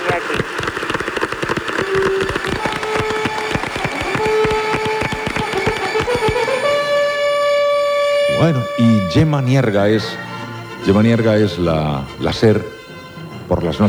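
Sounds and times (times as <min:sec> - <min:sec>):
large audience applause in the Teatro Novedades de Barcelona: 0:00.0 - 0:07.6
speech: 0:08.4 - 0:10.2, 0:10.8 - 0:12.8, 0:13.5 - 0:13.8.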